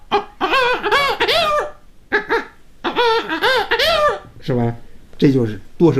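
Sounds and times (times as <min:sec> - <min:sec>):
voice imitating hens and rooster together: 0:00.0 - 0:04.5
speech: 0:04.5 - 0:05.9.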